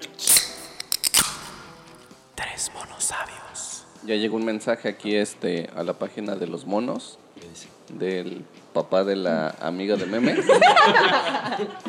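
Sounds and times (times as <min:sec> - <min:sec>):
a can being opened: 0:00.0 - 0:02.2
metallic clicks: 0:00.0 - 0:02.2
speech: 0:04.0 - 0:11.8
laughter: 0:10.0 - 0:11.8.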